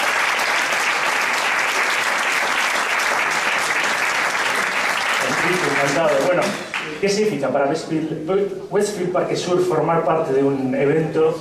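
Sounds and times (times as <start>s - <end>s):
audience applause: 0.0s - 7.0s
speech: 5.8s - 11.3s.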